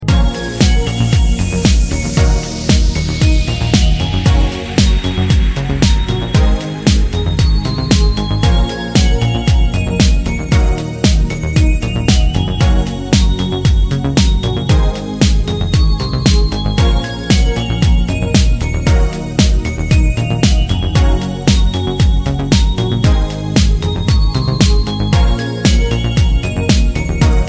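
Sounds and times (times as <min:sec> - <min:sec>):
instrumental ringtone: 0:00.0 - 0:27.4.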